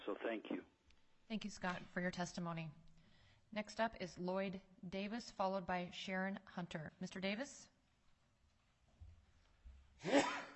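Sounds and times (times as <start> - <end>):
speech: 0.1 - 2.8, 3.5 - 7.7, 10.0 - 10.5
person sneezing: 10.0 - 10.5.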